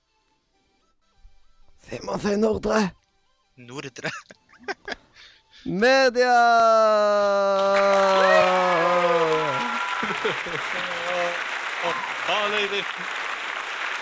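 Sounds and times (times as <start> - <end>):
speech: 1.9 - 3.0, 3.6 - 5.0, 5.6 - 13.2
laughter: 3.8 - 5.3, 7.4 - 13.2
cheering voices: 7.1 - 14.0
large crowd applauding: 7.4 - 14.0.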